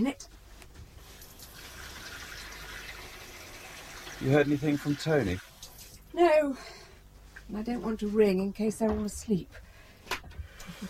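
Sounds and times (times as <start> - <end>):
water running into a kettle: 1.2 - 6.0
speech: 4.2 - 5.5, 6.4 - 6.8, 7.5 - 9.6.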